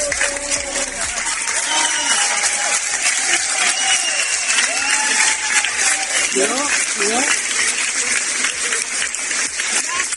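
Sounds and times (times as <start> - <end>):
cheers and whoops: 0.0 - 6.8
ovation for returning firefighters at Tenerife Norte airport: 0.0 - 10.1.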